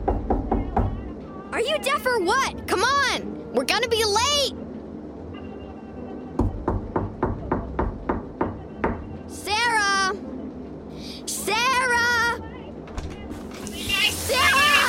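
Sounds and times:
fist pounding on a door: 0.0s - 1.0s, 6.4s - 9.1s
low hum: 0.0s - 14.8s
speech: 1.6s - 4.6s.

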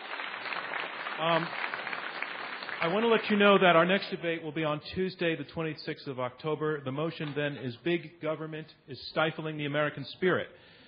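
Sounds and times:
crowd clapping: 0.0s - 4.1s
speech: 1.2s - 1.7s, 2.8s - 10.7s.

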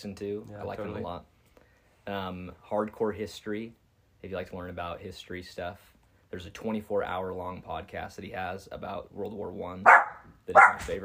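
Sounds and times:
speech: 0.0s - 1.4s, 2.1s - 11.0s
dog barking excitedly: 9.9s - 11.0s.

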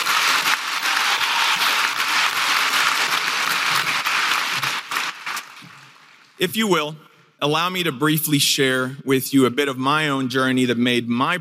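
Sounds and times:
audience applause: 0.0s - 6.4s
speech: 6.4s - 11.4s.

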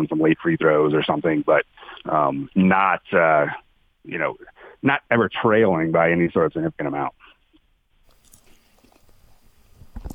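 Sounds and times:
speech: 0.0s - 7.2s
chewing and swallowing food: 8.1s - 9.2s, 10.0s - 10.1s.

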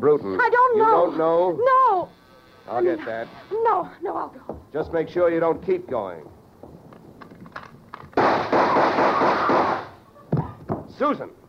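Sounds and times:
speech: 0.0s - 6.4s, 11.0s - 11.4s
gunfire through a door: 8.1s - 10.0s.

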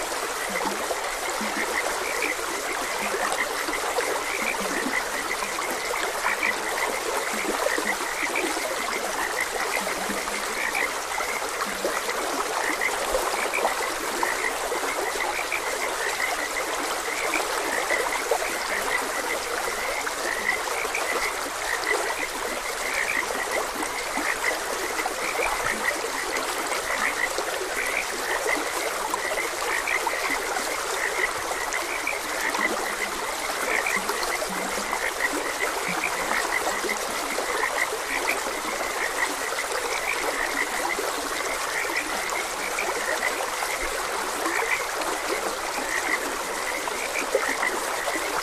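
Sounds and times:
flowing stream: 0.0s - 48.4s
frogs croaking: 0.0s - 48.4s.

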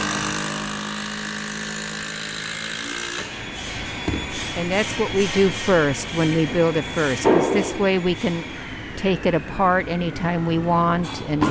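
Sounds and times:
power drill driving a long screw into a cedar log: 0.0s - 3.3s
speech: 4.6s - 11.4s.

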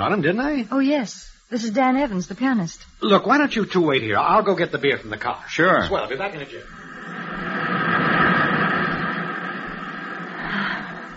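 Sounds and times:
speech: 0.0s - 6.8s
ocean surf: 6.8s - 11.0s.

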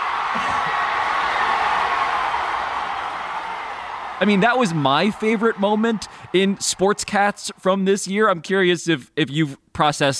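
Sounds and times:
crowd erupting in applause: 0.0s - 7.8s
speech: 4.2s - 10.1s.

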